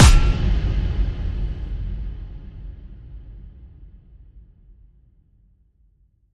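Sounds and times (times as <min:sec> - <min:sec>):
percussive hit: 0:00.0 - 0:01.4.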